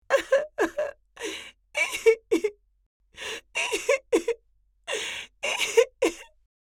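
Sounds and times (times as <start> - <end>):
senior lady crying desperately: 0.0 - 2.5, 3.2 - 6.3.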